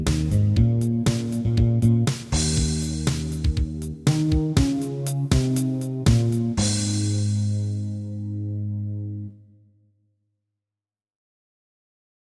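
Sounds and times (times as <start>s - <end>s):
bass line: 0.0s - 9.5s.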